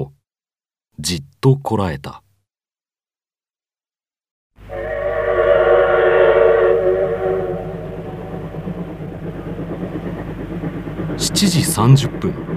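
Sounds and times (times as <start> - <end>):
speech: 1.0 - 2.2, 11.2 - 12.5
steam train whistle: 4.6 - 9.2
steam train chugging: 4.6 - 12.5.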